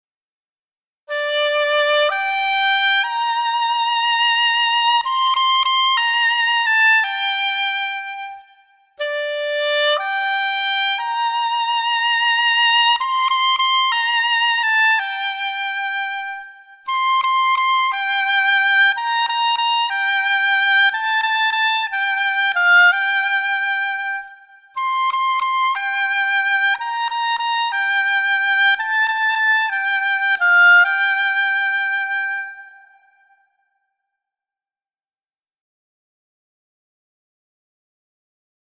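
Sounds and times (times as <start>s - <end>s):
oboe: 1.1s - 33.6s.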